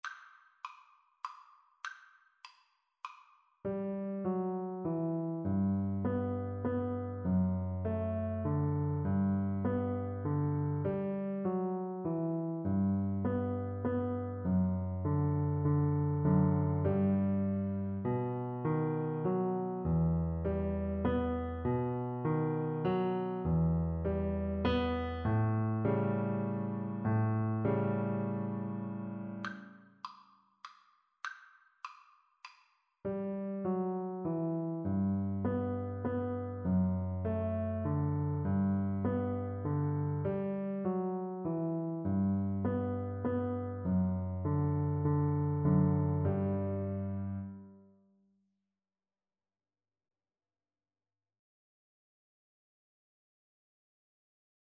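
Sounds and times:
piano duet: 3.7 - 29.7, 33.1 - 47.9.

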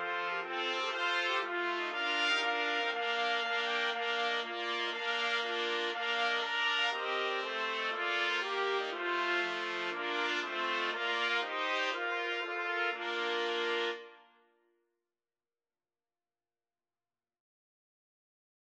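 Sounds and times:
trumpet quartet playing: 0.0 - 14.2.

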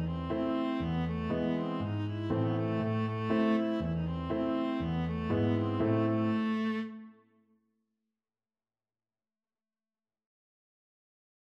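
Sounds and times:
viola playing a bulgarish folk tune: 0.0 - 7.3.

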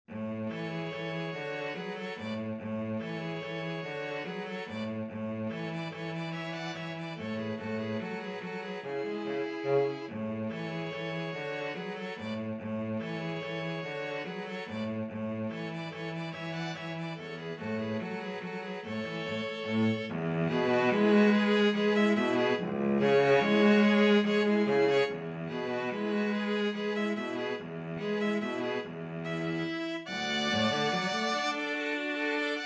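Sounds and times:
string trio playing: 0.1 - 32.6.

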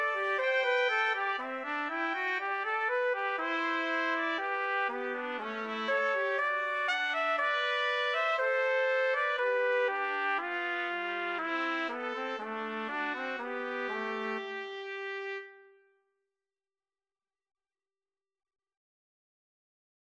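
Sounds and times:
two-trumpet duet: 0.0 - 15.9.

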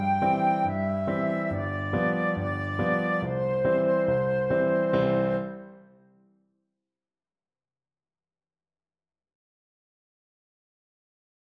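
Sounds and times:
flute melody: 0.0 - 6.0.

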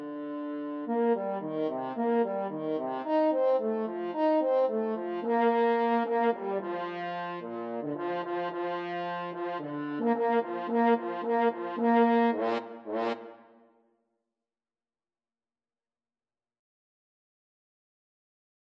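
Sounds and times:
french horn duet: 0.0 - 13.4.

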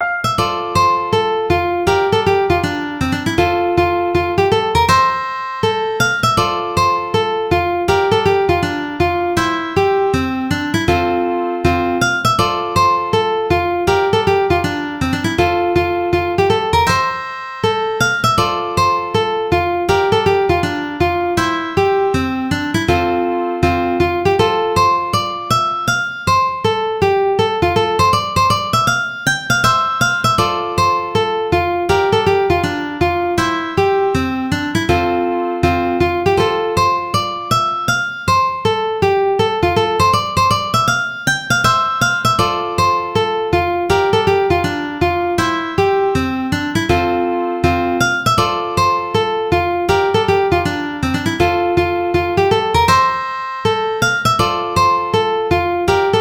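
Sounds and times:
ukulele: 0.0 - 56.1.

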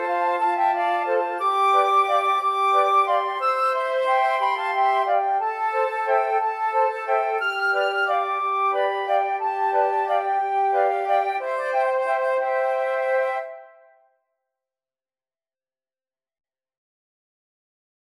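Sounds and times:
flute quartet: 0.0 - 14.0.

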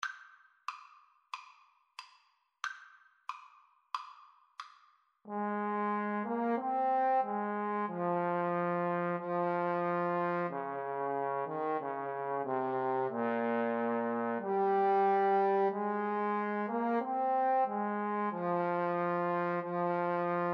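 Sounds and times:
trombone duet: 5.3 - 20.5.

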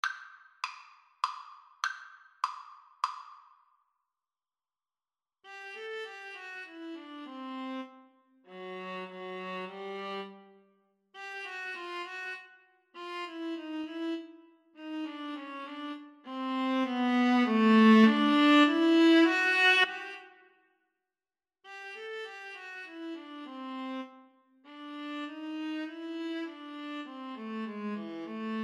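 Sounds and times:
viola duet: 5.5 - 10.6, 11.2 - 20.4, 21.7 - 28.6.

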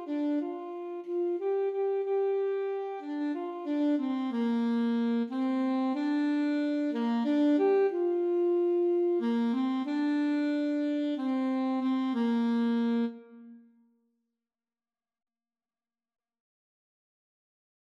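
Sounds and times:
alto saxophone melody: 0.0 - 13.8.

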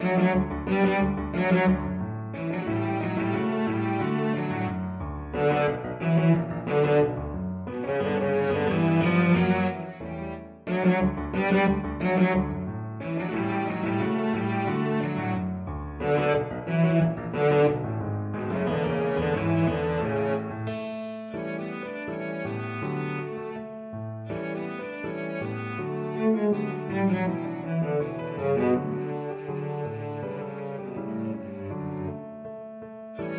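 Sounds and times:
violoncello: 0.0 - 33.3.

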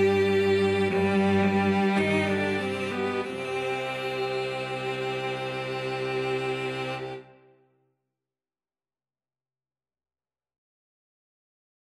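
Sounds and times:
cello ensemble: 0.0 - 7.5.

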